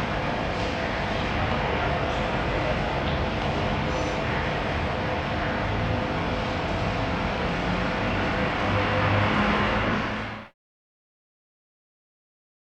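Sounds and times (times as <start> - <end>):
train station ambience: 0.0 - 10.5.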